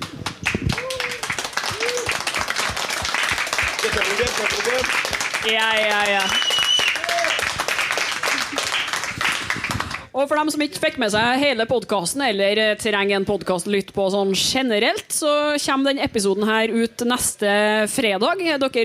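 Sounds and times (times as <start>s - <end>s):
audience applause for the band: 0.0s - 10.1s
speech: 4.4s - 6.6s, 10.2s - 18.8s.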